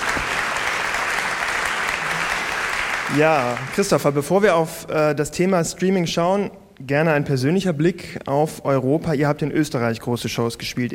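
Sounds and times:
audience applause: 0.0s - 4.5s
speech: 3.1s - 10.9s.

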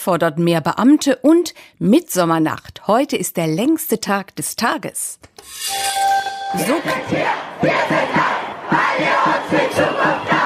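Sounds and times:
speech: 0.0s - 10.4s
protest crowd chanting at a Fridays for Future climate demonstration: 6.6s - 10.4s.

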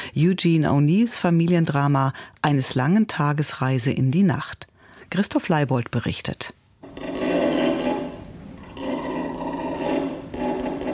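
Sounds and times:
speech: 0.1s - 6.6s
creaking on a dark stage: 6.8s - 10.9s
scratching on a dark stage: 6.8s - 10.9s.

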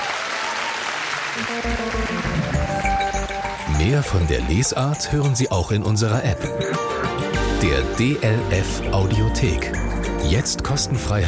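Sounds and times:
audience applause: 0.0s - 4.2s
speech: 1.4s - 2.2s, 3.8s - 11.2s.

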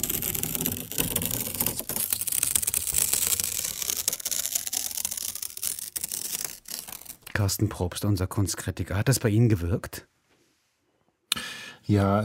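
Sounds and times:
slow tearing of paper in an anti-stress art installation by Anna Witt: 0.0s - 7.3s
speech: 7.4s - 10.1s, 11.9s - 12.2s.

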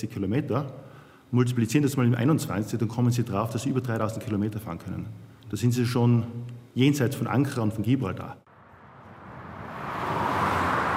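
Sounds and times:
speech: 0.0s - 8.5s
motorway traffic at the Ampasser Hof rest stop near Innsbruck: 8.5s - 10.9s.

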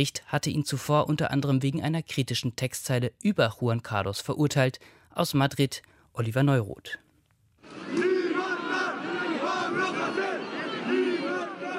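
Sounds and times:
speech: 0.0s - 7.0s
protest crowd chanting in the street: 7.6s - 11.7s.

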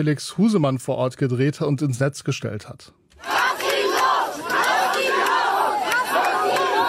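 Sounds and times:
speech: 0.0s - 3.4s
crowd of demonstrators chanting in unison: 3.2s - 6.8s.

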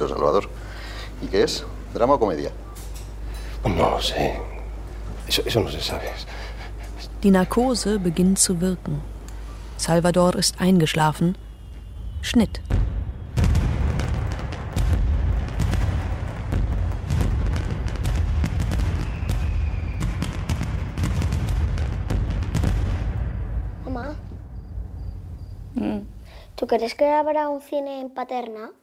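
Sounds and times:
speech: 0.0s - 0.6s, 1.2s - 2.6s, 3.6s - 4.5s, 5.3s - 6.5s, 7.2s - 9.2s, 9.8s - 11.4s, 12.2s - 12.8s, 26.7s - 28.8s
fireworks in the night sky: 11.5s - 25.6s.

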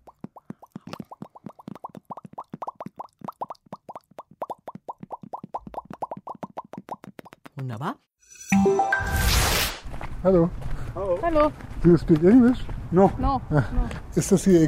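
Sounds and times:
carp-like mouth popping: 0.0s - 7.7s
speech: 7.6s - 9.2s, 10.2s - 14.6s.

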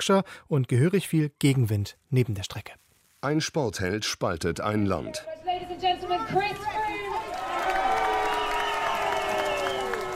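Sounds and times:
speech: 0.0s - 7.0s
roadside crowd applauding at bike race: 6.7s - 10.1s.

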